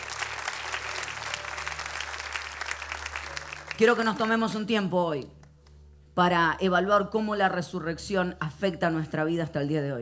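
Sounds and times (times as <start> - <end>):
audience applause: 0.0 - 4.0
speech: 3.8 - 5.4, 6.2 - 9.9.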